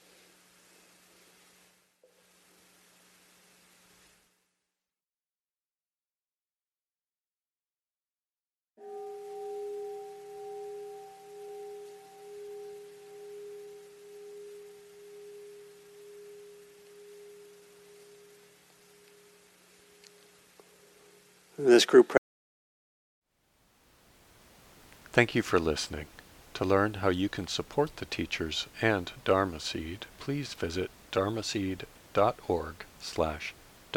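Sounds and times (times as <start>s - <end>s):
meditation bell rung: 8.8s - 19.5s
speech: 21.6s - 22.2s, 25.2s - 33.9s.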